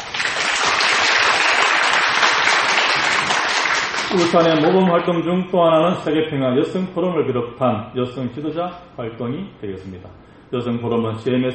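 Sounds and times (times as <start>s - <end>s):
audience applause: 0.0s - 4.8s
speech: 4.1s - 11.5s.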